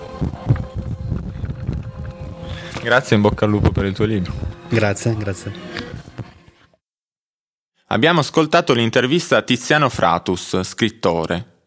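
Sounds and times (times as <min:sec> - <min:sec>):
flipping through book pages: 0:00.1 - 0:03.1
speech: 0:00.2 - 0:00.5, 0:02.8 - 0:05.9, 0:07.9 - 0:11.5.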